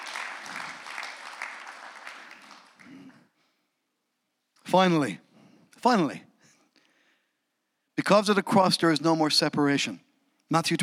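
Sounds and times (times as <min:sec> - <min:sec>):
audience applause: 0:00.0 - 0:03.2
speech: 0:04.7 - 0:05.2, 0:05.8 - 0:06.3, 0:08.1 - 0:10.8.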